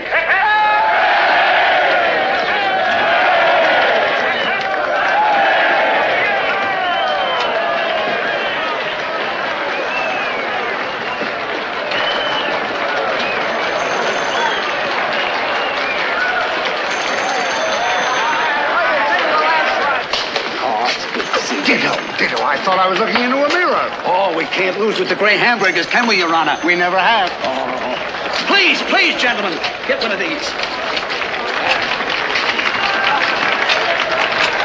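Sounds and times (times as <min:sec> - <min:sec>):
large crowd cheering and shouting: 0:00.0 - 0:34.6
people clapping: 0:00.0 - 0:34.6
speech: 0:24.6 - 0:31.1.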